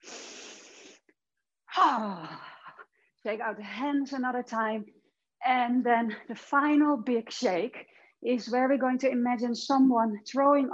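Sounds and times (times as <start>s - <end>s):
deep breath during an exercise warm-up: 0.0s - 1.1s
speech: 1.8s - 2.4s, 3.2s - 10.7s.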